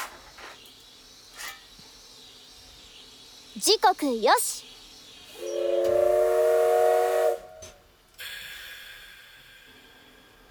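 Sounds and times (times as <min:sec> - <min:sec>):
speech: 0:03.6 - 0:04.7
steam train whistle as train departs: 0:05.3 - 0:07.8
escaping steam hissing: 0:05.3 - 0:10.4.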